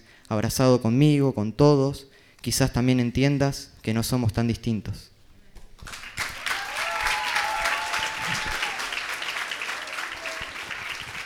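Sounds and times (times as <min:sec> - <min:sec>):
speech: 0:00.3 - 0:05.1
audience applause: 0:05.8 - 0:11.2
faint whoops and calls: 0:06.4 - 0:10.9.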